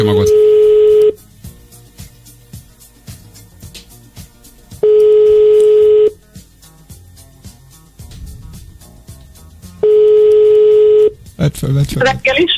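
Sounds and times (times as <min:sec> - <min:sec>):
people talking: 0:00.0 - 0:00.4, 0:11.4 - 0:12.5
music: 0:00.0 - 0:12.5
telephone ringing tones on a call to a listener: 0:00.2 - 0:01.2, 0:04.8 - 0:06.2, 0:09.8 - 0:11.2.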